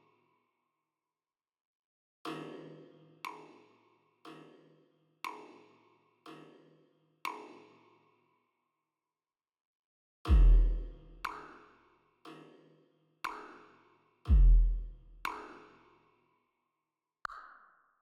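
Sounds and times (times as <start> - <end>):
drums and percussion: 2.3 - 8.0, 10.3 - 16.0.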